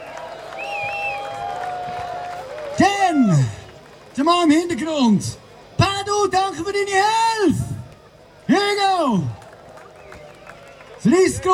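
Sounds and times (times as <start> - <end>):
audience applause: 0.0 - 4.6, 9.0 - 11.5
audience cheering: 0.0 - 4.6, 7.9 - 11.5
speech: 4.2 - 5.4, 6.0 - 7.6, 8.5 - 9.4, 11.0 - 11.5.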